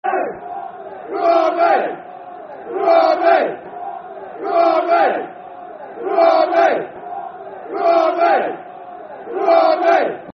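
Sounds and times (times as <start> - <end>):
football chant, soccer song: 0.0 - 10.3.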